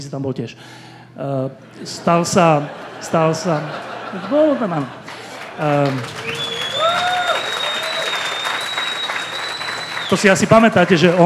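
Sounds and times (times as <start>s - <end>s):
speech: 0.0s - 5.0s, 5.6s - 6.4s, 10.1s - 11.2s
laughter: 1.6s - 11.2s
studio audience applause: 1.7s - 11.2s
brief cheer: 4.8s - 11.2s
high whistle: 6.0s - 10.7s.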